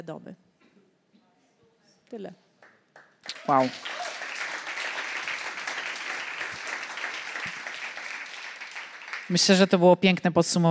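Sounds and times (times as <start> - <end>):
speech: 0.0 - 0.5, 2.1 - 2.4, 3.4 - 4.0, 9.3 - 10.7
audience applause: 3.0 - 9.7.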